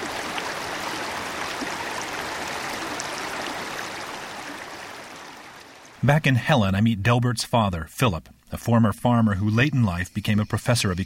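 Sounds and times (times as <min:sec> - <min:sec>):
mountain stream rushing over rocks: 0:00.0 - 0:06.0
speech: 0:06.0 - 0:11.0.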